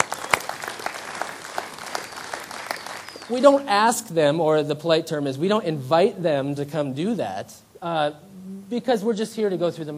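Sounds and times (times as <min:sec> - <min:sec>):
room full of people applauding: 0:00.0 - 0:03.4
speech: 0:03.3 - 0:09.9.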